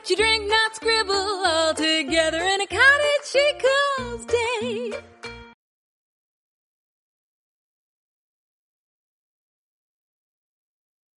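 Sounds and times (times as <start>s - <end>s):
person singing: 0.0s - 5.0s.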